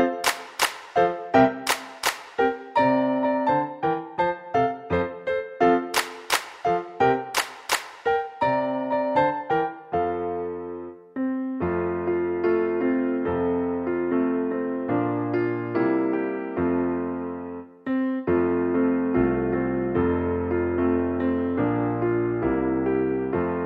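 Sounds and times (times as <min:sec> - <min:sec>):
piano: 0:00.0 - 0:23.6.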